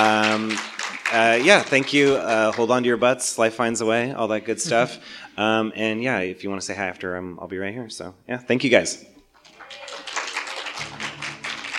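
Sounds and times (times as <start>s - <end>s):
audience applause: 0.0s - 3.0s, 9.4s - 11.7s
speech: 0.6s - 9.1s
laughter: 4.1s - 5.4s.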